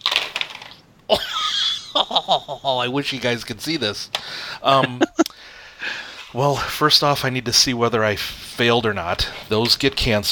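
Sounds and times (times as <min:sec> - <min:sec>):
dice rolling: 0:00.0 - 0:00.8
speech: 0:01.1 - 0:01.4, 0:02.0 - 0:05.2, 0:05.8 - 0:10.2
laughter: 0:01.1 - 0:03.0, 0:04.6 - 0:05.3.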